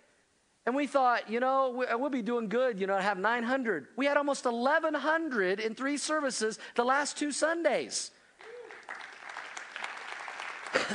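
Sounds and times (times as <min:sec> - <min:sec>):
speech: 0:00.7 - 0:08.2
audience applauding: 0:08.4 - 0:10.9.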